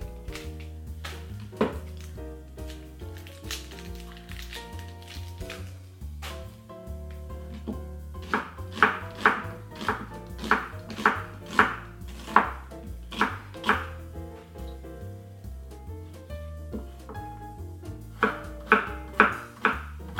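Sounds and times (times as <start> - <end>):
music: 0.0 - 20.1
knife dicing an onion on a cutting board: 8.2 - 13.9.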